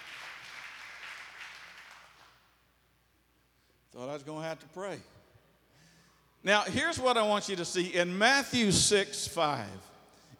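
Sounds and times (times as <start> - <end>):
audience clapping hands: 0.0 - 2.5
speech: 4.0 - 5.2, 6.4 - 10.3.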